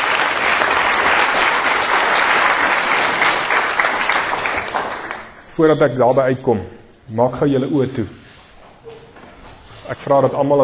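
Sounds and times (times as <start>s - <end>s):
audience applause: 0.0s - 5.4s
speech: 5.6s - 8.2s, 9.9s - 10.6s.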